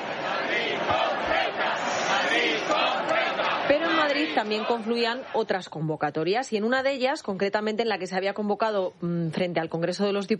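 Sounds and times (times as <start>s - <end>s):
large crowd chanting at a demonstration: 0.0s - 5.7s
speech: 4.2s - 10.3s.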